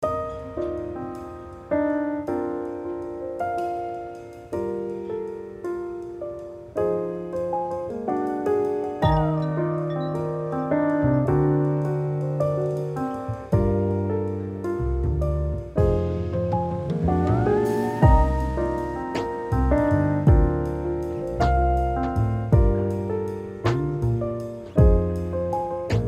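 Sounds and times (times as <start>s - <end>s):
lo-fi chill jazzy piano cafe loop: 0.0s - 26.0s.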